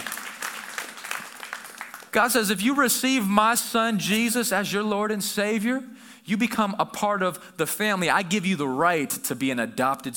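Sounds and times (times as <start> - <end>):
audience applause: 0.0 - 2.2
speech: 2.1 - 10.1.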